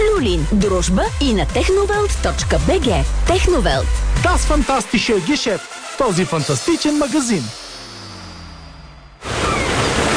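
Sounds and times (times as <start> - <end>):
speech: 0.4 - 7.7
sea waves at a summer beach: 9.2 - 10.1.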